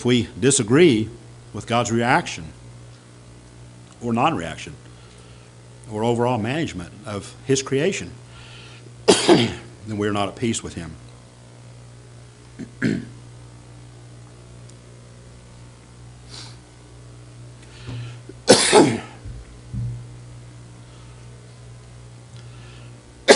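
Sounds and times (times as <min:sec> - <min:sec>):
speech: 0:00.0 - 0:02.6, 0:04.0 - 0:04.9, 0:05.9 - 0:08.2, 0:09.1 - 0:11.0, 0:12.6 - 0:13.2
speaker coughing after choking mid-sermon: 0:09.1 - 0:09.7, 0:12.6 - 0:13.2, 0:18.4 - 0:19.2.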